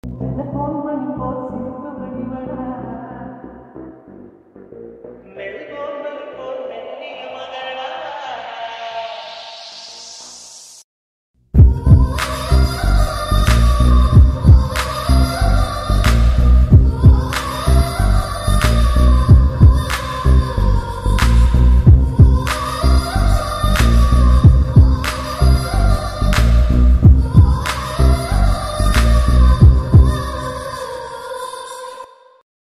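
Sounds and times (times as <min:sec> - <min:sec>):
background music mix: 0:11.9 - 0:30.8.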